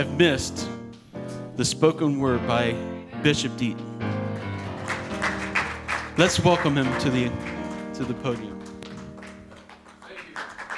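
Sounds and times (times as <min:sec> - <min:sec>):
speech: 0:00.0 - 0:00.7, 0:01.6 - 0:03.9, 0:06.2 - 0:08.5
audience applauding: 0:04.1 - 0:10.7.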